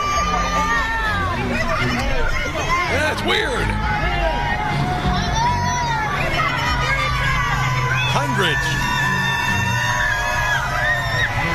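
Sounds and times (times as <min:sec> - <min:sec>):
crowd cheering: 0:00.0 - 0:11.5
speech: 0:03.2 - 0:03.9.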